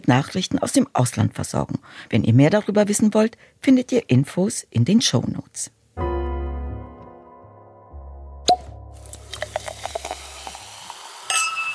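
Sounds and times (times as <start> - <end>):
speech: 0.1 - 6.1
champagne cork popping: 8.5 - 11.7.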